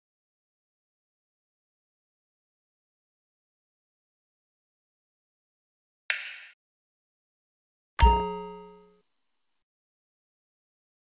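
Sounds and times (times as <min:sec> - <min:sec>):
notification sound: 0:08.0 - 0:09.0.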